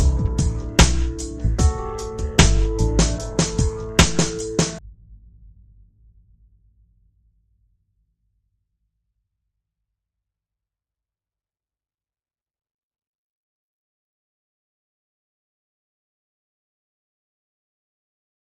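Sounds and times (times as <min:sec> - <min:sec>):
trip hop reggae music: 0:00.0 - 0:04.8.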